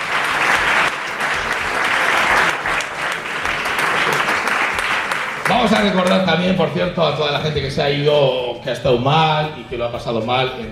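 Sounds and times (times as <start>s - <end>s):
crowd clapping: 0.0s - 6.6s
speech: 5.6s - 10.7s.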